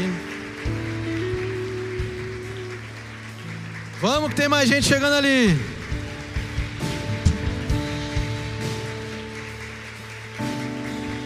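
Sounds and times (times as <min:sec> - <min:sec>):
audience applause: 0:00.0 - 0:11.2
speech: 0:04.0 - 0:05.7.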